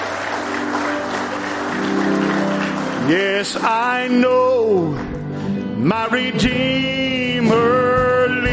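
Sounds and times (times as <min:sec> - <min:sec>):
hand clap of praise: 0:00.0 - 0:05.2
speech: 0:03.1 - 0:08.4.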